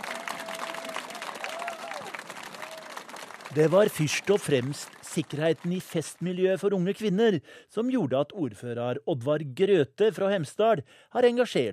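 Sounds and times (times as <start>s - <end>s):
crowd applause: 0.0s - 6.6s
speech: 3.5s - 11.7s.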